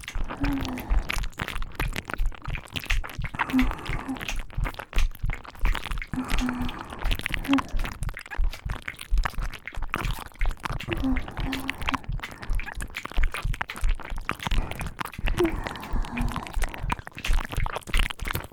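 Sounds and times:
ear licking on both ears: 0:00.0 - 0:18.5
person counting: 0:00.2 - 0:01.6, 0:03.3 - 0:04.4, 0:06.1 - 0:08.0, 0:10.8 - 0:13.0, 0:14.4 - 0:17.5.

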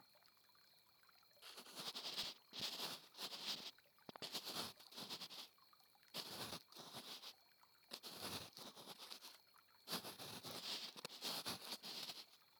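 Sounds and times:
ear cleaning on a lap pillow: 0:01.4 - 0:05.5, 0:06.2 - 0:12.4.

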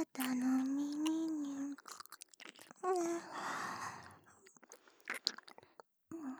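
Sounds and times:
ASMR ear licking sounds: 0:00.2 - 0:03.6, 0:04.4 - 0:05.9.

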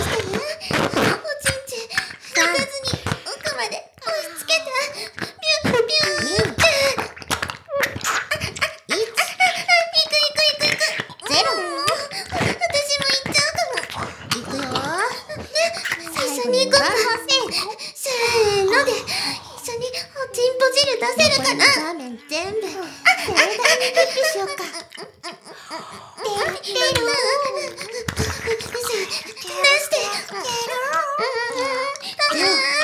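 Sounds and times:
person speaking erotic lines: 0:00.0 - 0:07.2, 0:10.5 - 0:32.8
ear licking: 0:00.0 - 0:32.8
laughter: 0:15.5 - 0:17.8, 0:21.1 - 0:32.8
person counting down: 0:15.8 - 0:17.6, 0:21.2 - 0:22.4.

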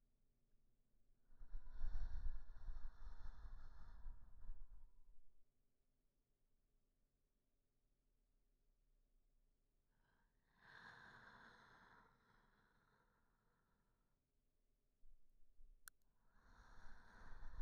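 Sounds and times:
person breathing in sleep: 0:01.5 - 0:04.7, 0:10.0 - 0:14.0, 0:16.3 - 0:17.5.

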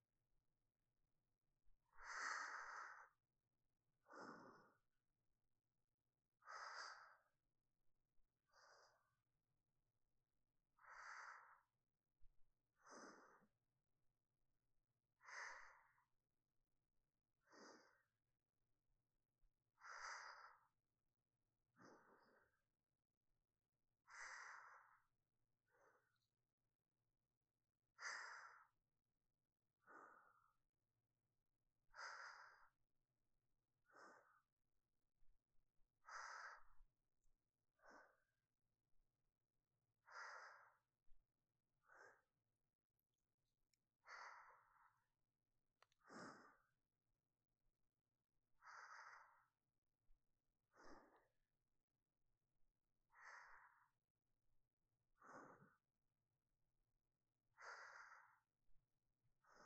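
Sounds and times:
sleeping breath: 0:01.8 - 0:03.3, 0:04.0 - 0:05.0, 0:06.4 - 0:07.4, 0:08.5 - 0:09.2, 0:10.8 - 0:11.8, 0:12.8 - 0:13.6, 0:15.2 - 0:16.2, 0:17.4 - 0:18.2, 0:19.8 - 0:20.8, 0:21.8 - 0:22.6, 0:24.0 - 0:25.1, 0:25.7 - 0:26.2, 0:28.0 - 0:28.8, 0:29.8 - 0:30.6, 0:31.9 - 0:32.8, 0:33.8 - 0:34.6, 0:36.0 - 0:36.9, 0:37.7 - 0:38.4, 0:40.0 - 0:41.0, 0:41.8 - 0:42.4, 0:44.0 - 0:45.1, 0:45.8 - 0:46.8, 0:48.6 - 0:49.6, 0:50.7 - 0:51.4, 0:53.1 - 0:54.0, 0:55.2 - 0:55.9, 0:57.5 - 0:58.5, 0:59.4 - 0:59.6.

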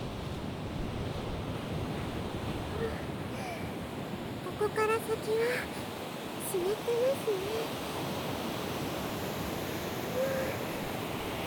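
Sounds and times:
waves washing onto the shore: 0:00.0 - 0:11.4
speech: 0:04.6 - 0:05.8, 0:06.5 - 0:07.9.

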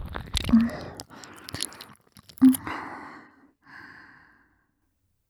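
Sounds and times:
ASMR ear licking sounds: 0:00.4 - 0:03.5.

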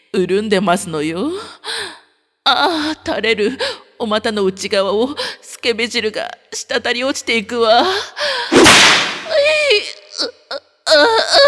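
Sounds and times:
speech: 0:00.1 - 0:01.8, 0:02.6 - 0:08.4, 0:11.0 - 0:11.4
whip lash: 0:08.5 - 0:09.4.

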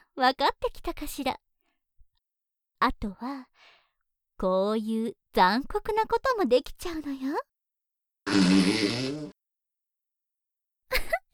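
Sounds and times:
speech: 0:00.2 - 0:01.4, 0:02.8 - 0:03.7, 0:04.4 - 0:07.5, 0:08.3 - 0:09.3
fart: 0:08.3 - 0:09.4.

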